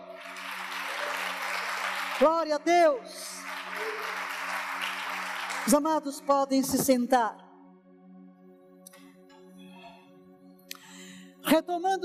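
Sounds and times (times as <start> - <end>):
audience applause: 0.0 - 5.9
speech: 2.2 - 4.2, 5.6 - 7.4, 11.5 - 12.0.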